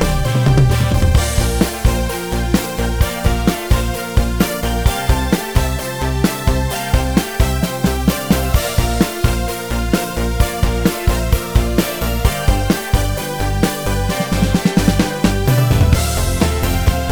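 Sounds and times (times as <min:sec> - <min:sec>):
post-disco drums: 0:00.0 - 0:17.1
post-disco keyboard: 0:00.0 - 0:17.1.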